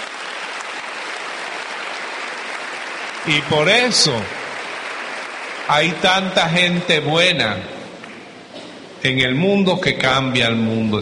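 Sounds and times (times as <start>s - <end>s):
audience applause: 0.0s - 7.0s
speech: 3.2s - 4.4s, 5.7s - 7.8s, 9.0s - 11.0s.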